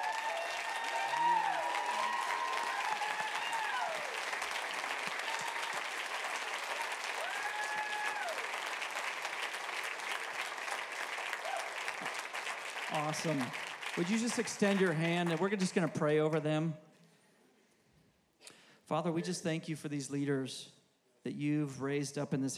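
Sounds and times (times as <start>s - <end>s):
audience applause: 0.0s - 16.2s
speech: 13.0s - 16.8s, 18.9s - 22.5s.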